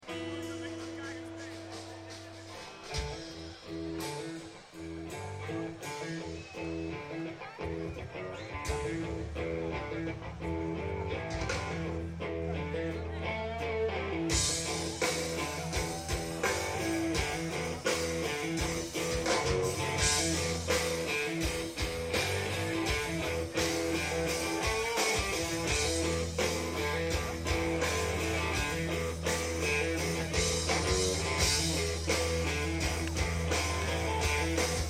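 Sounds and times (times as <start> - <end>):
chorus riff: 0.0 - 34.8.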